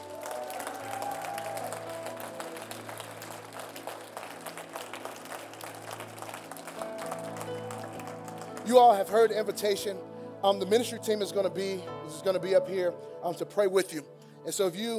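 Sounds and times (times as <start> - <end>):
audience clapping hands in praise: 0.0 - 10.0
speech: 8.7 - 14.9.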